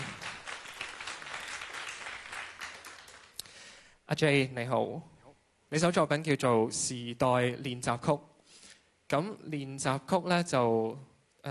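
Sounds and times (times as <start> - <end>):
audience applause greeting a performer at a live event: 0.0 - 3.4
speech: 4.1 - 5.1, 5.7 - 8.3, 9.1 - 11.5.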